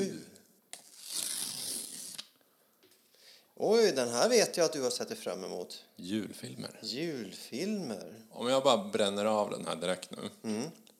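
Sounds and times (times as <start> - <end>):
paper tearing as a calendar door is ripped off: 0.8 - 2.3
speech: 3.6 - 10.8.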